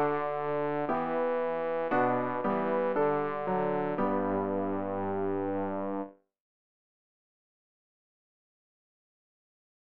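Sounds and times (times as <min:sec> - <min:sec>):
bass practice aid: 0:00.0 - 0:06.1.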